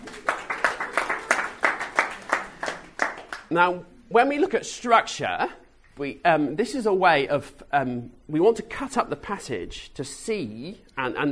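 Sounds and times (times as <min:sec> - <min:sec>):
audience applause: 0:00.0 - 0:03.5
speech: 0:03.5 - 0:11.3.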